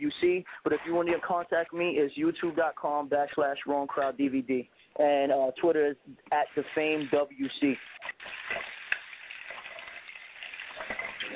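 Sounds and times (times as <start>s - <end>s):
speech: 0.4s - 8.4s
running water from a tap, washing hands: 6.4s - 11.3s.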